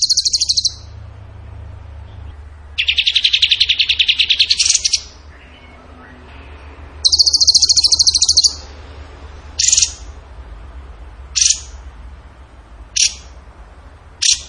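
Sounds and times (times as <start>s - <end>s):
bird singing pulsed trills: 0.0s - 1.0s, 1.8s - 6.3s, 7.0s - 8.8s, 9.6s - 10.2s, 11.3s - 11.8s, 12.9s - 13.4s.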